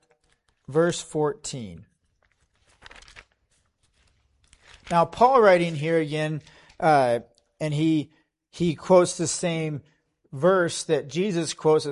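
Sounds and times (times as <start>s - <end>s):
thin Bible pages rustling as they are turned: 0.0s - 0.8s, 2.0s - 6.8s
speech: 0.7s - 1.9s, 4.9s - 11.8s.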